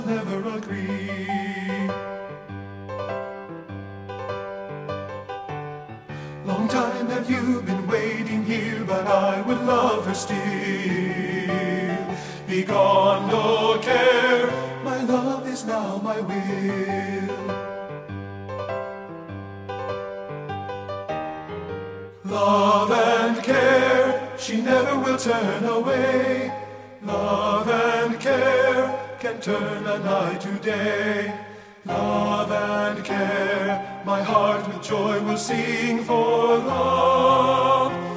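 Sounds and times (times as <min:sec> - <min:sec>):
men singing tenor: 0:00.0 - 0:02.3, 0:06.4 - 0:17.7, 0:22.2 - 0:38.1.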